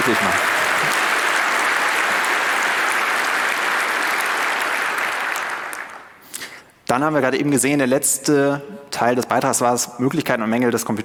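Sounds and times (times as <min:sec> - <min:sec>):
audience applause: 0:00.0 - 0:06.2
speech: 0:00.1 - 0:01.0, 0:06.9 - 0:11.0.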